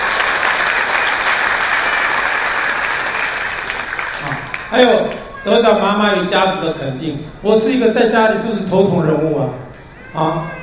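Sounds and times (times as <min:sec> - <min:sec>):
audience applause: 0:00.0 - 0:05.3
speech: 0:04.7 - 0:10.6.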